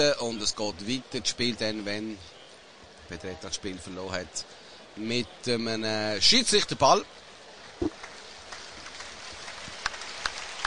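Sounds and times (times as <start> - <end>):
speech: 0.0 - 2.4, 3.1 - 7.2
applause: 7.6 - 10.6.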